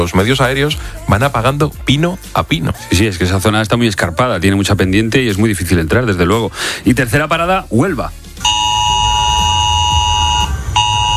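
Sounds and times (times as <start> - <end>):
speech: 0.0 - 8.6
mobile phone emergency alert tone: 8.4 - 11.1.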